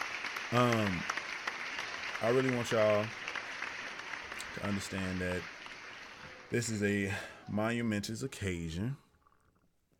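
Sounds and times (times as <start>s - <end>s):
audience hand clapping: 0.0s - 7.0s
speech: 0.5s - 1.2s, 2.2s - 3.2s, 4.5s - 5.6s, 6.5s - 9.0s.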